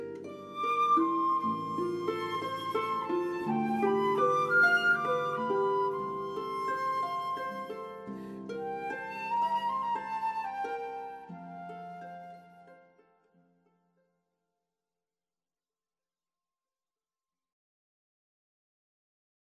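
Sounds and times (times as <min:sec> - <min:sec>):
flute: 0:00.0 - 0:13.2
harp: 0:00.0 - 0:13.8.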